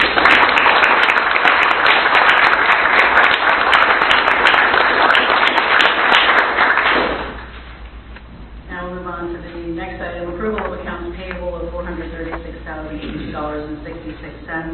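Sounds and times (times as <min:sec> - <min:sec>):
audience applause: 0:00.0 - 0:07.5.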